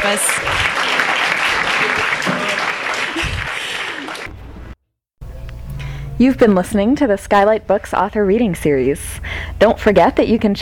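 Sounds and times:
speech: 0:00.0 - 0:00.9, 0:01.8 - 0:02.5, 0:06.2 - 0:10.6
audience applause: 0:00.0 - 0:04.4.

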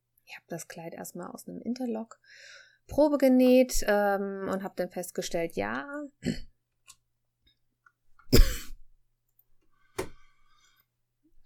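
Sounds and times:
speech: 0:00.3 - 0:06.5
person coughing: 0:08.3 - 0:08.8.

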